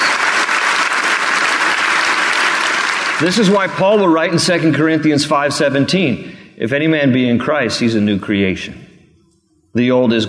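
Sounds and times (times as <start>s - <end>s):
audience clapping: 0.0s - 4.6s
speech: 3.2s - 8.9s, 9.8s - 10.2s.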